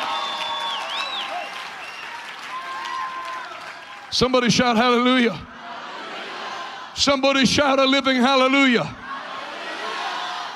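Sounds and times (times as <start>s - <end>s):
audience clapping: 0.0s - 4.3s
speech: 4.1s - 5.5s, 7.0s - 9.0s.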